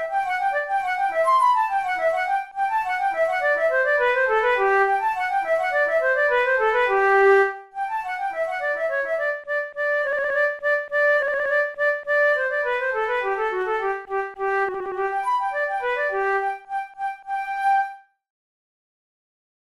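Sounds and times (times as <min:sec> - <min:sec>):
flute playing an allemande: 0:00.0 - 0:18.1.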